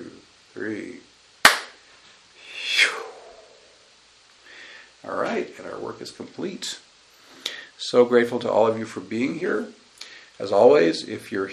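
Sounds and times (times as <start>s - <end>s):
speech: 0.6s - 1.0s, 6.0s - 6.9s, 7.8s - 9.8s, 10.4s - 11.5s
group clapping hands in unison: 1.4s - 1.8s.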